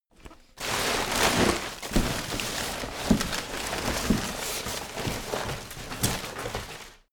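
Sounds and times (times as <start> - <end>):
searching through a recycle bin: 0.1 - 7.1.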